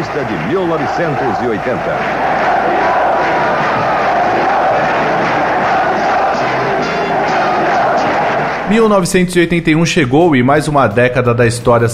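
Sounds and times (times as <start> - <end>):
football fans cheering and chanting: 0.0 - 9.2
speech: 0.2 - 3.0, 8.7 - 11.9.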